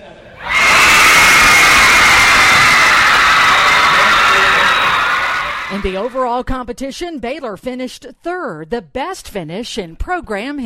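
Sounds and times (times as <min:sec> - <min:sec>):
home crowd celebrating Baylor's championship: 0:00.4 - 0:06.2
speech: 0:05.8 - 0:10.6.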